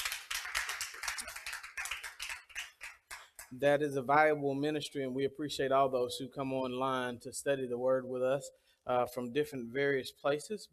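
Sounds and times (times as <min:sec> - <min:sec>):
audience hand clapping: 0:00.0 - 0:03.6
speech: 0:03.5 - 0:10.7.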